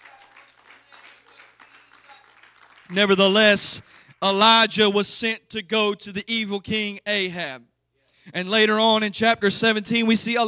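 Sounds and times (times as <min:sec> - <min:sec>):
audience clapping hands: 0:00.0 - 0:04.4
speech: 0:02.9 - 0:07.7, 0:08.3 - 0:10.4.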